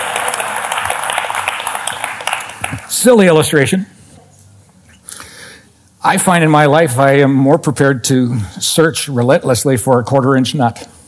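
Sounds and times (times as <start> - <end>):
audience clapping: 0.0 - 3.2
speech: 3.0 - 4.0, 6.0 - 11.0.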